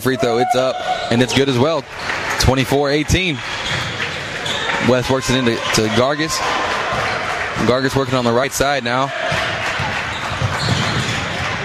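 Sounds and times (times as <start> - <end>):
speech: 0.0 - 3.9, 4.8 - 9.2
crowd noise: 0.0 - 11.6
basketball dribbled during a game: 3.4 - 4.7, 9.2 - 11.6.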